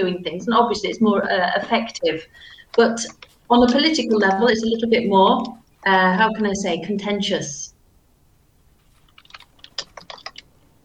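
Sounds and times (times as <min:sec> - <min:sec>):
speech: 0:00.0 - 0:07.8
typing on a computer keyboard: 0:09.0 - 0:10.5.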